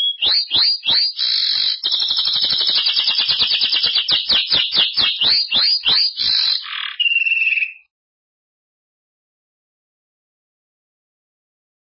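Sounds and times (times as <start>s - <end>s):
Belgian canary singing: 0.0s - 7.9s.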